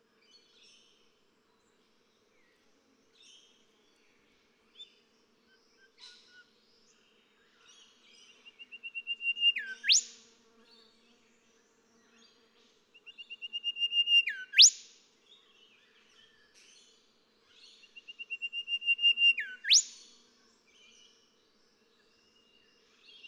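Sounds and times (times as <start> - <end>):
golden whistler singing: 5.7 - 10.1, 13.0 - 14.8, 17.6 - 20.0.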